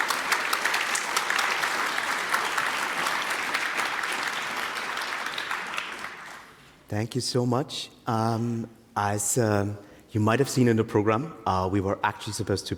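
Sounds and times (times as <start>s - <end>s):
audience applause: 0.0s - 6.6s
speech: 6.9s - 12.7s.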